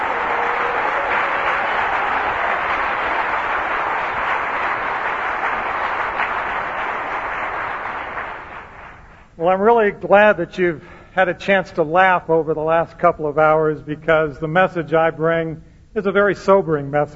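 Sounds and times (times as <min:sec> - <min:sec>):
large audience clapping: 0:00.0 - 0:09.4
speech: 0:09.4 - 0:17.1.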